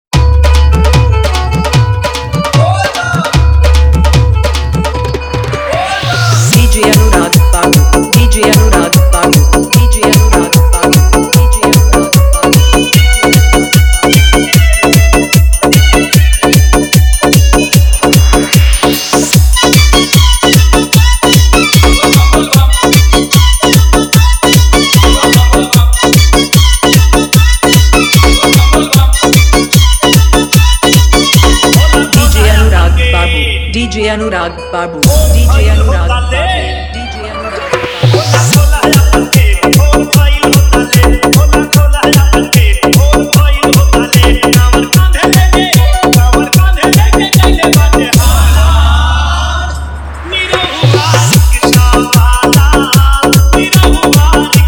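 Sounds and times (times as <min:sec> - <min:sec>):
hard bass remix: 0:00.1 - 0:34.1, 0:35.0 - 0:54.6.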